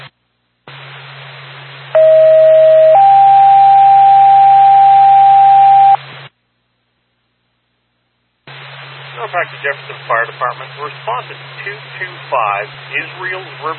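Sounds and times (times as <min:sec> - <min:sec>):
fire department dispatch paging tones: 0:02.0 - 0:06.0
speech: 0:09.4 - 0:13.7.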